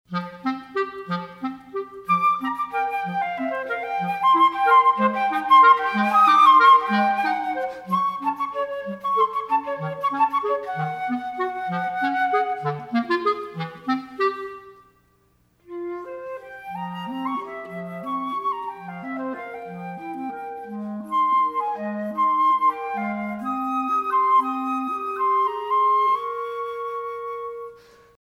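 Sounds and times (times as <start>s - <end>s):
waltz music: 0.1s - 14.9s, 15.7s - 27.8s.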